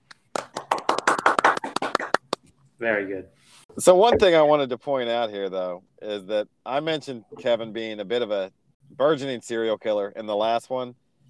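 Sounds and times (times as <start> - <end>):
round of applause: 0.2 - 2.4
speech: 2.8 - 11.0.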